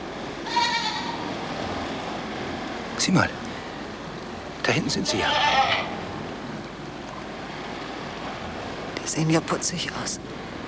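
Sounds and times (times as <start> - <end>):
low steady hiss: 0.0 - 10.6
goat bleating: 0.4 - 1.3, 4.8 - 6.2
speech: 3.0 - 3.4, 4.7 - 5.8, 9.1 - 10.6.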